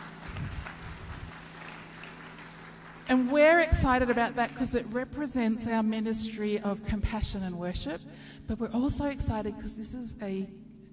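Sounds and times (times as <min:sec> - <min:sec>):
audience clapping: 0:00.0 - 0:04.9
speech: 0:03.1 - 0:10.6.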